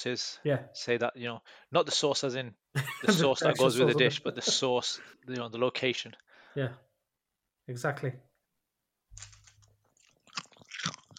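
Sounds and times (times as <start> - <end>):
speech: 0.0 - 6.9, 7.7 - 8.3
laughter: 2.8 - 5.0
chewing crunchy crisps: 9.1 - 11.1.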